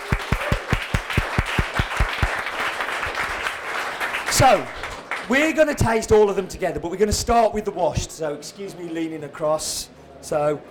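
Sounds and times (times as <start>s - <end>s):
audience applause: 0.0s - 5.3s
speech: 4.4s - 10.6s.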